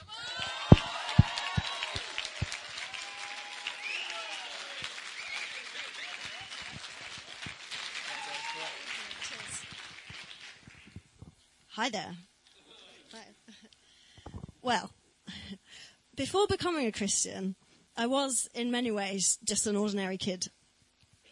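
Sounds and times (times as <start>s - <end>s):
audience applause: 0.1s - 11.0s
speech: 11.8s - 12.3s, 14.6s - 15.0s, 16.2s - 20.6s.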